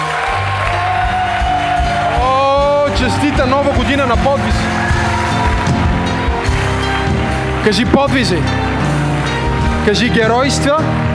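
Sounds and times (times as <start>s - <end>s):
audience cheering: 0.0s - 8.5s
audience applauding: 0.0s - 11.1s
speech: 3.0s - 4.8s, 7.6s - 8.8s, 9.8s - 11.1s.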